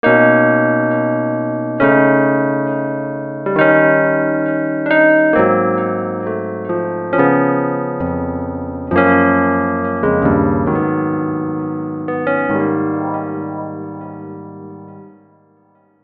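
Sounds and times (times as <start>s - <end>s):
electric piano: 0.0s - 16.0s.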